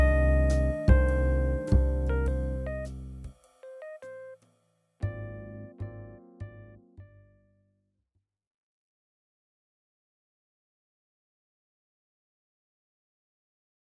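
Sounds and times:
jazz music: 0:00.0 - 0:04.4, 0:05.0 - 0:07.4.

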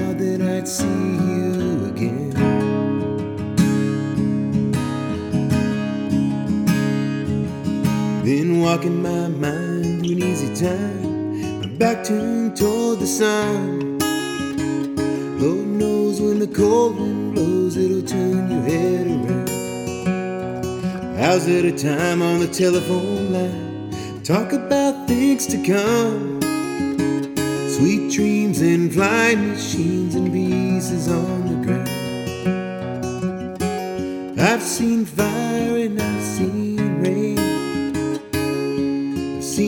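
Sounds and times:
acoustic guitar playing: 0:00.0 - 0:39.6.

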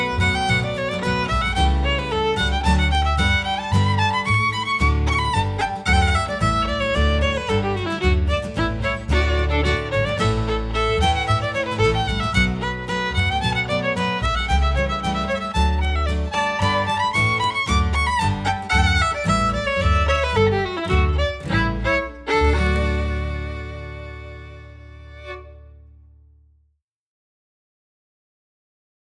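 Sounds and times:
fiddler playing a traditional processional: 0:00.0 - 0:25.8.

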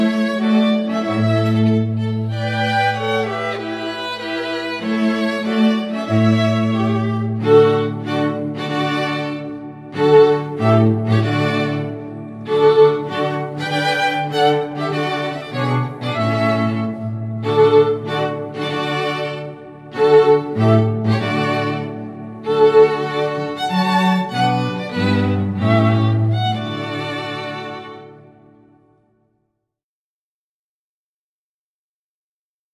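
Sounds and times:
string quartet playing a wedding march: 0:00.0 - 0:28.7.

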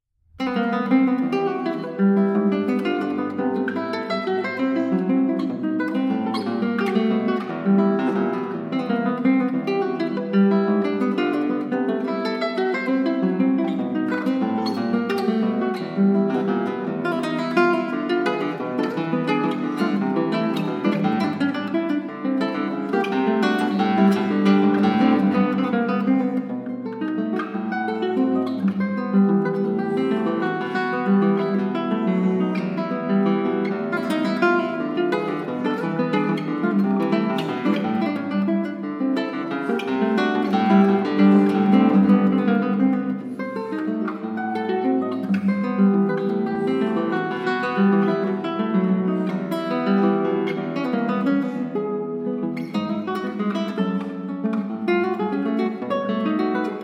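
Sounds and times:
classical guitar playing: 0:00.2 - 0:56.8.

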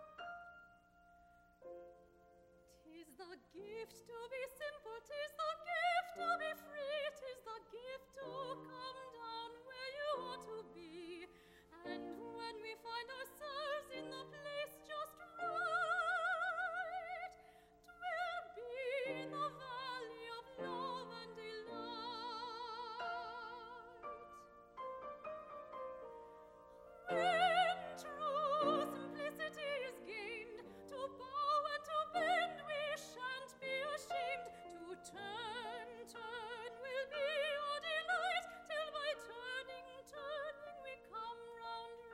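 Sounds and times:
opera singer singing folk song: 0:02.9 - 0:24.4, 0:27.1 - 0:42.1.

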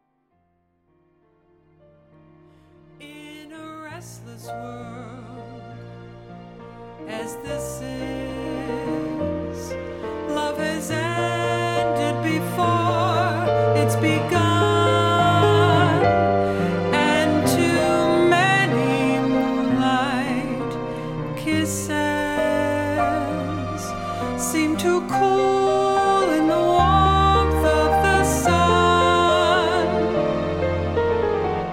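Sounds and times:
person singing jazz: 0:07.1 - 0:30.9.

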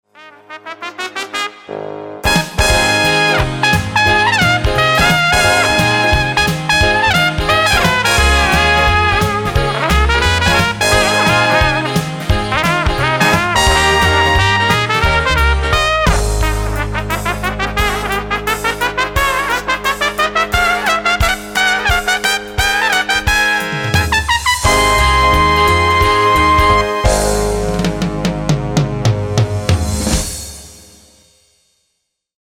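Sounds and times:
trumpet: 0:00.0 - 0:30.6.

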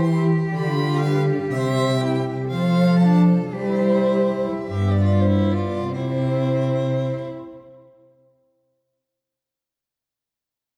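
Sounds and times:
string quartet: 0:00.0 - 0:08.1.

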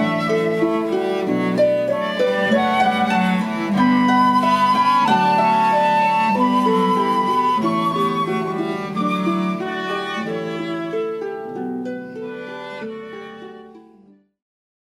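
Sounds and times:
flute in a trio: 0:00.0 - 0:11.4
cello in a trio: 0:00.0 - 0:14.2
harp in a trio: 0:00.0 - 0:14.3.

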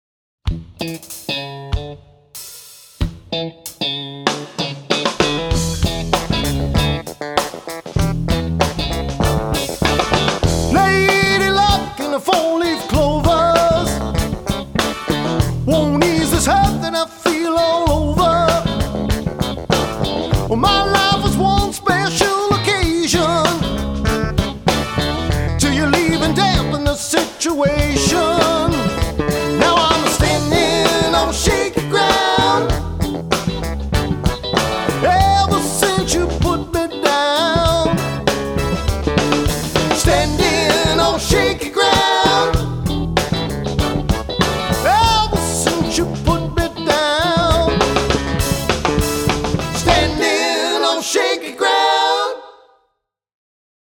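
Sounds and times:
cover band playing: 0:00.5 - 0:51.3.

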